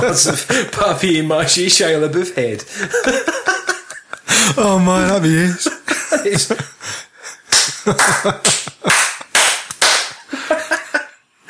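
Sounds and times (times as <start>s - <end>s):
people laughing: 0.0s - 0.8s, 2.7s - 9.4s, 10.1s - 11.2s
speech: 0.0s - 3.6s, 4.5s - 7.0s, 7.9s - 9.0s
light hand claps: 7.5s - 10.3s.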